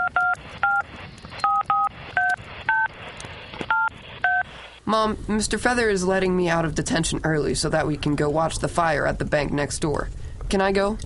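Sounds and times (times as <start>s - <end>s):
phone number dialed on a touch-tone keypad: 0.0s - 0.8s, 1.4s - 2.9s, 3.7s - 4.4s
speech: 4.9s - 11.0s.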